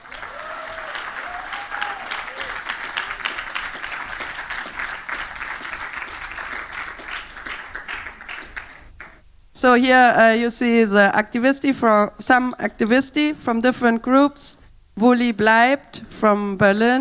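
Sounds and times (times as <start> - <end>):
audience applause: 0.0 - 9.2
speech: 9.6 - 17.0.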